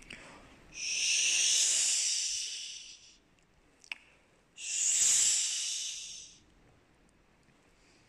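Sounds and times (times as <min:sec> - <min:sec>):
mouth imitating wind blowing through tree: 0:00.8 - 0:03.1, 0:04.6 - 0:06.4.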